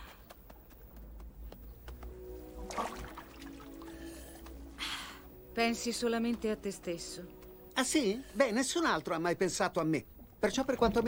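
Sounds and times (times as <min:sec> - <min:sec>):
low constant rumble: 0:00.3 - 0:11.0
faint tonal hum: 0:01.2 - 0:11.0
rushing water: 0:02.6 - 0:04.0
speech: 0:05.6 - 0:11.0.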